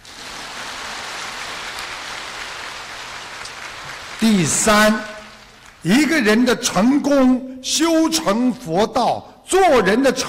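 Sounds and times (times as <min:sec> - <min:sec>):
crowd applauding: 0:00.0 - 0:06.0
speech: 0:04.2 - 0:05.1, 0:05.8 - 0:10.2.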